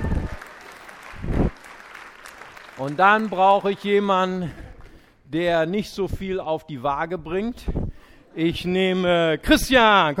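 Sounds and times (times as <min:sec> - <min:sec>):
audience applause: 0:00.0 - 0:05.1
speech: 0:02.8 - 0:04.6, 0:05.3 - 0:07.8, 0:08.4 - 0:10.1.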